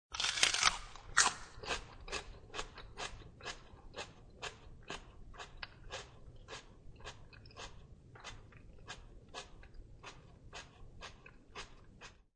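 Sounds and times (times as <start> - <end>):
biting and chewing fresh celery: 0.1 - 12.3.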